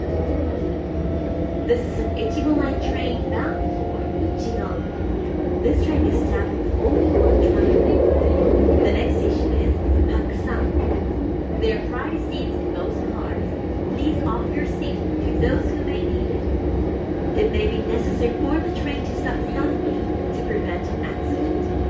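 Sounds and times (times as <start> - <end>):
JR Echigo Line train running: 0.0 - 21.8.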